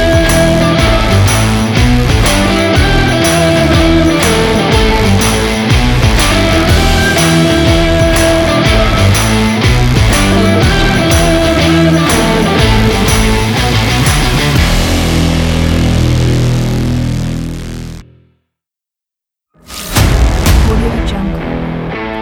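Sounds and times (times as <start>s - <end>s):
sport promo rock music: 0.0s - 18.1s, 19.7s - 22.2s.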